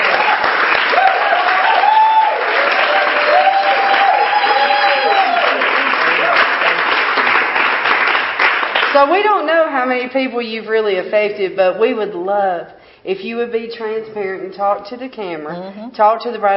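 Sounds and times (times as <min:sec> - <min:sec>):
audience applauding a prophetess on an interview show: 0:00.0 - 0:09.0
speech: 0:09.0 - 0:16.5.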